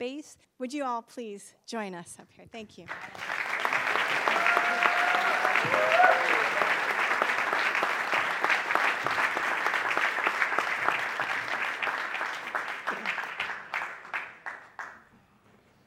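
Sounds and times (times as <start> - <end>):
speech: 0.0 - 3.5
audience applause: 2.9 - 15.0
whistles and cheers: 3.8 - 7.2.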